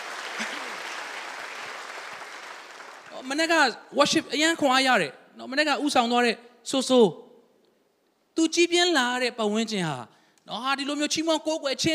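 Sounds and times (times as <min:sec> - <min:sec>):
congregation clapping hands in praise during a Sunday church worship service: 0:00.0 - 0:03.6
speech: 0:03.2 - 0:07.2, 0:08.4 - 0:11.9.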